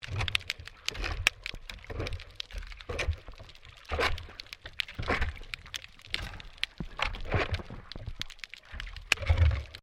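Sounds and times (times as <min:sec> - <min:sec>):
shovel scraping underwater during maintenance work: 0:00.0 - 0:05.4, 0:07.0 - 0:08.0, 0:08.7 - 0:09.8.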